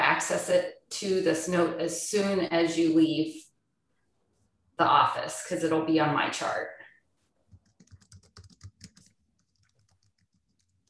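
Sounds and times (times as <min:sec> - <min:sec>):
speech: 0:00.2 - 0:03.5, 0:04.8 - 0:06.8
typing on a computer keyboard in a medical office: 0:07.5 - 0:10.8.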